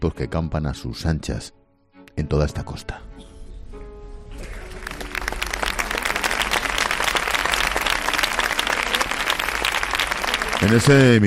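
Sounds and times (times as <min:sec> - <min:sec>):
speech: 0:00.0 - 0:01.6, 0:02.2 - 0:03.1, 0:10.6 - 0:11.2
crowd applauding in honour of the guards: 0:04.4 - 0:11.2.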